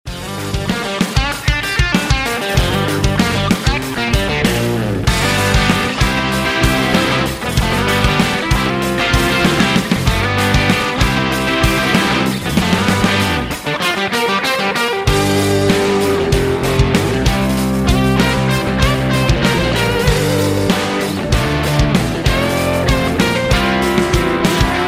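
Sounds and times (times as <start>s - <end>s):
instrumental music: 0.1s - 24.8s.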